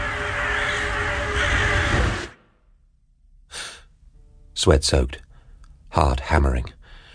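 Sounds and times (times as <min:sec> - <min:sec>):
ravens cawing: 0:00.0 - 0:02.4
speech: 0:04.6 - 0:05.2, 0:05.9 - 0:06.8.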